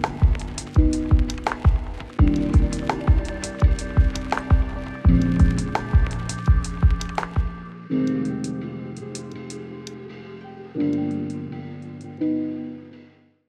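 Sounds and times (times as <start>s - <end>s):
lo-fi beats: 0.0s - 10.0s.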